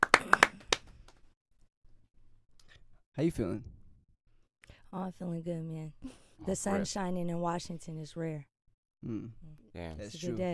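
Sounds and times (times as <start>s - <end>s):
clapping: 0.0s - 1.3s
speech: 3.2s - 3.8s, 4.9s - 10.5s.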